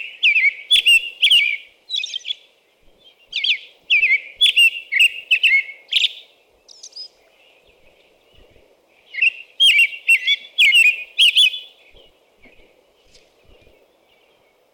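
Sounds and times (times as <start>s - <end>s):
American robin whistled caroling: 0.0s - 2.4s, 3.3s - 7.2s, 9.1s - 12.6s.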